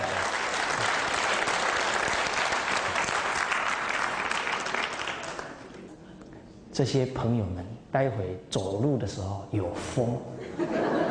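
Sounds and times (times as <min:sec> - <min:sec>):
audience applause: 0:00.0 - 0:05.8
speech: 0:06.8 - 0:11.0
laughter: 0:10.4 - 0:11.0.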